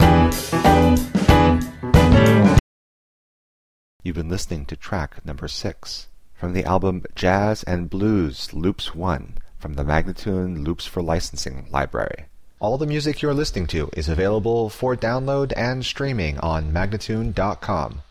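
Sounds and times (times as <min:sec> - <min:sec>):
jazz and blues loops: 0:00.0 - 0:02.6
person speaking: 0:04.0 - 0:18.0.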